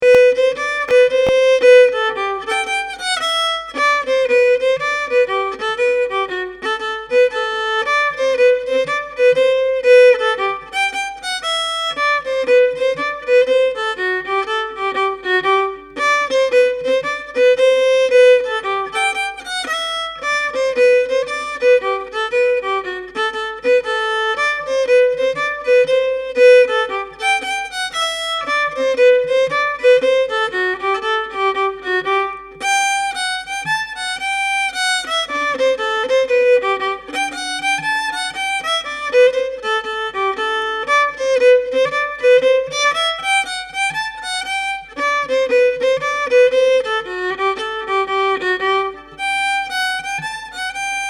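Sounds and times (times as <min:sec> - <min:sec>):
solo fiddle reel: 0:00.0 - 0:51.0.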